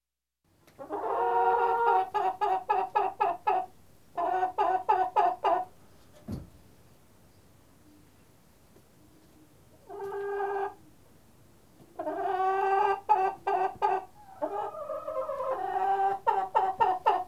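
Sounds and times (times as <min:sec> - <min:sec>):
chicken clucking: 0:00.7 - 0:05.8, 0:09.2 - 0:10.9, 0:11.8 - 0:17.2.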